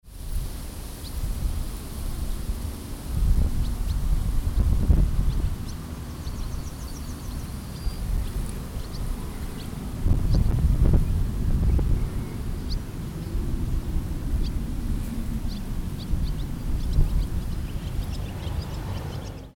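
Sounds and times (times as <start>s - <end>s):
wheat field rustling: 0.1s - 18.8s.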